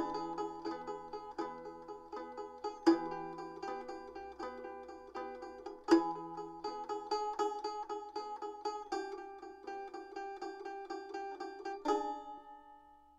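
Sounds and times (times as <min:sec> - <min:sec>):
banjo in E minor: 0:00.0 - 0:13.1.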